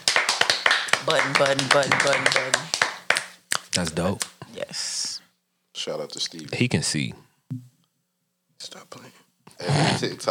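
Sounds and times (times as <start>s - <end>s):
hand clapping: 0.0s - 4.4s
speech: 1.0s - 2.8s, 3.7s - 5.0s, 5.8s - 7.7s, 8.6s - 10.2s.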